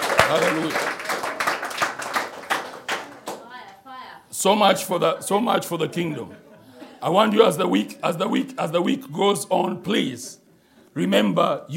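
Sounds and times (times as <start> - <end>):
audience clapping hands: 0.0 - 3.8
speech: 0.3 - 1.0, 4.4 - 10.4, 11.0 - 11.7
laughter: 4.7 - 8.6.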